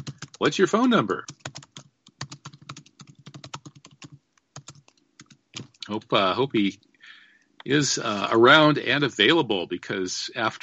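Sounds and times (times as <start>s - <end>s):
rapid typing on a computer keyboard: 0.0s - 0.4s, 1.2s - 6.1s
speech: 0.4s - 1.5s, 5.9s - 6.9s, 7.6s - 10.6s.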